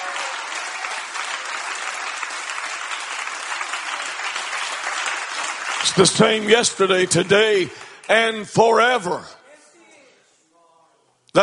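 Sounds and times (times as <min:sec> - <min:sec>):
applause from a large crowd: 0:00.0 - 0:08.2
speech: 0:05.8 - 0:09.4.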